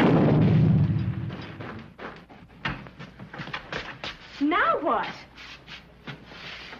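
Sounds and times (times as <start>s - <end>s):
dynamite cake explosion: 0.0s - 1.8s
clattering thuds: 0.0s - 3.9s
speech: 4.9s - 5.2s.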